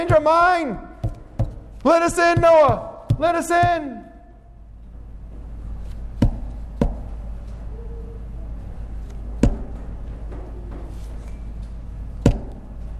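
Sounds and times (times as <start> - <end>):
speech: 0.0 - 0.9, 1.8 - 4.1
low steady hum: 0.0 - 12.9
knocking on a wooden door: 1.0 - 4.0.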